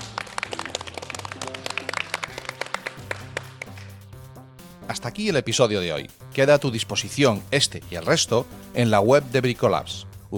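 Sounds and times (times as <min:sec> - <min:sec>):
guests clapping: 0:00.0 - 0:04.1
speech: 0:04.9 - 0:10.3.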